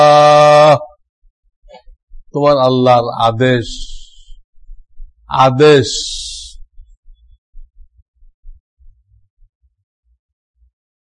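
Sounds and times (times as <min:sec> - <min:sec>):
speech: 0:02.3 - 0:04.0, 0:05.3 - 0:06.4
heartbeat: 0:03.8 - 0:05.4, 0:06.0 - 0:09.3.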